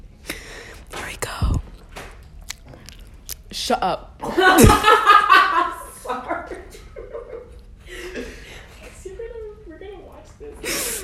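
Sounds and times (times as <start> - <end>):
chewing gum: 1.4 - 3.5
speech: 3.6 - 5.7.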